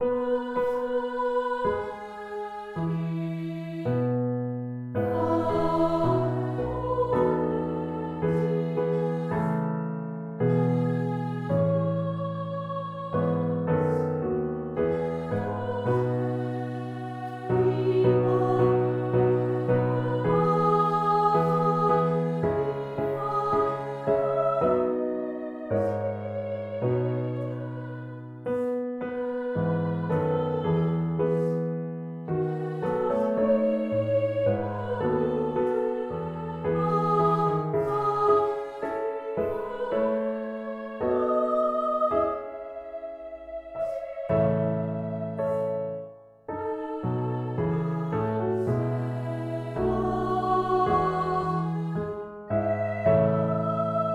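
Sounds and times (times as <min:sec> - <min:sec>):
votive song: 0:00.0 - 0:04.2, 0:05.0 - 0:54.1.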